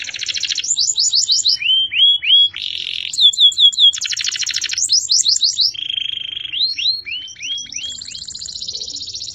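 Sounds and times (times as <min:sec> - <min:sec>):
champion canary singing: 0:00.0 - 0:09.3.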